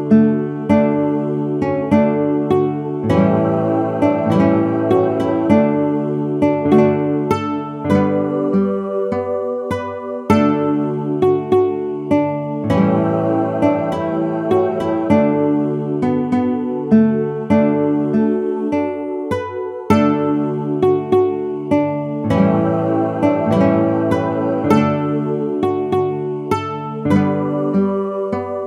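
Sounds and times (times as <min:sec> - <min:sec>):
guitar playing a traditional tune: 0:00.0 - 0:28.6.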